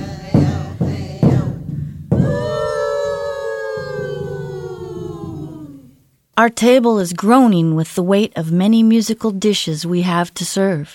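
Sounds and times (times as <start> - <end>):
welcoming song of the native tribes of the Northwest: 0.0 - 6.0
speech: 6.4 - 10.9.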